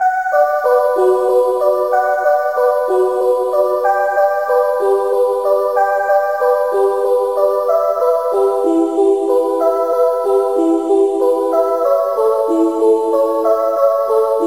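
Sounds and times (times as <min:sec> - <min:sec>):
waltz music: 0:00.0 - 0:14.4.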